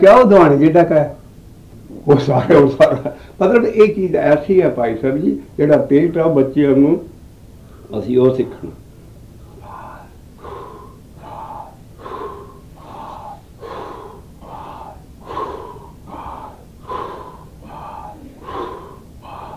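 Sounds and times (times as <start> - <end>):
speech: 0.0 - 1.2, 2.0 - 7.1, 7.9 - 8.8
heavy rhythmic breaths in a deep belly breathing exercise: 1.1 - 5.8, 7.2 - 19.5.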